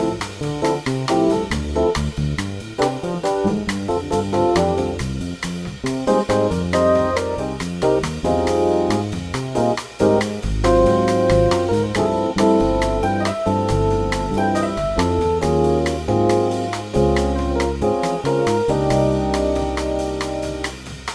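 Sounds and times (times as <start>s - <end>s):
minor modal backing track: 0.0s - 21.1s.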